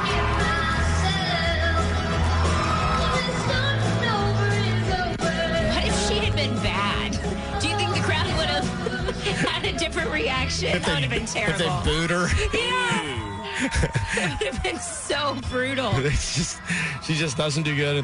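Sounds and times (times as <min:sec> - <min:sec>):
crowd cheering and whooping: 0:00.0 - 0:05.1, 0:11.4 - 0:18.0
music playing: 0:00.0 - 0:18.0
laughter: 0:08.4 - 0:17.4
speech: 0:10.6 - 0:12.9, 0:13.6 - 0:18.0.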